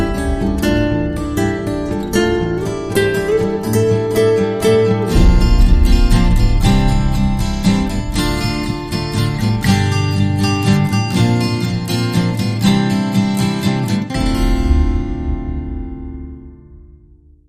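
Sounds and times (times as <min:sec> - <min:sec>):
percussion: 0:00.0 - 0:12.0
guitars: 0:00.0 - 0:17.2.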